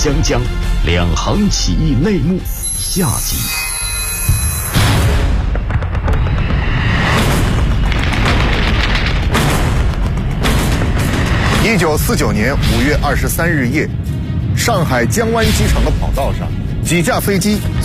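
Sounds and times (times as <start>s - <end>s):
speech: 0.0s - 3.6s, 11.6s - 17.8s
rumbling artillery fire: 4.8s - 13.1s.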